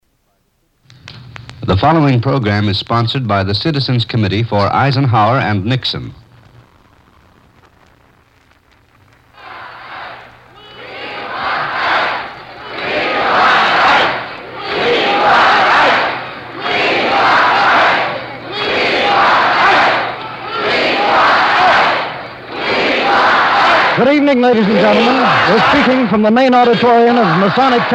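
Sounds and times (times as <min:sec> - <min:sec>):
speech: 0:01.7 - 0:06.2, 0:26.1 - 0:27.9
large auditorium crowd cheering enthusiastically: 0:09.3 - 0:27.9.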